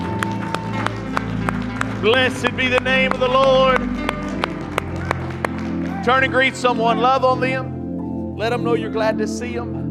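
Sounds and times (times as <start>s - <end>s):
audience clapping hands in praise: 0.0s - 7.1s
speech: 2.0s - 4.1s, 6.0s - 7.7s, 8.4s - 9.8s.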